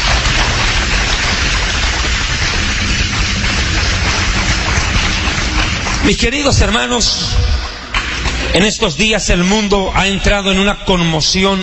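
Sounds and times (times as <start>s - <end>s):
audience applause: 0.0s - 8.5s
speech: 6.1s - 7.5s, 8.5s - 11.6s.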